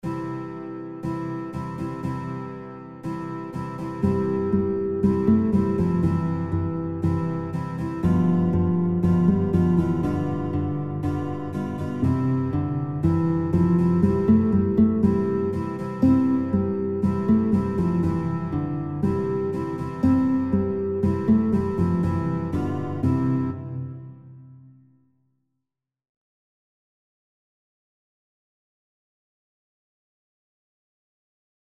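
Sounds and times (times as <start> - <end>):
guitar playing children's songs: 0.0 - 24.9.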